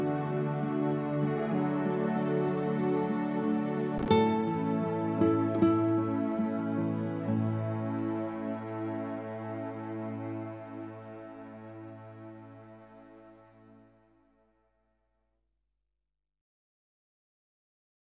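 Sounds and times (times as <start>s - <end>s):
acoustic praise instrumental music: 0.0s - 13.9s.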